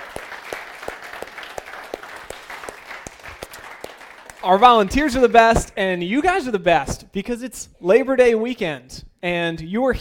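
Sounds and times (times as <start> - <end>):
church congregation applauding in Rehoboth: 0.0 - 5.2
speech: 4.4 - 9.9.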